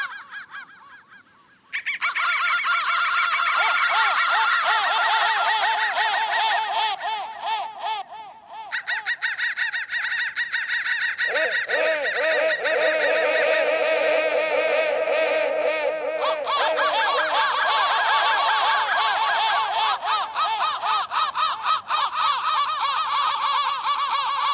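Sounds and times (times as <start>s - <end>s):
crow cawing: 0.0s - 24.5s
laughter: 11.3s - 20.6s.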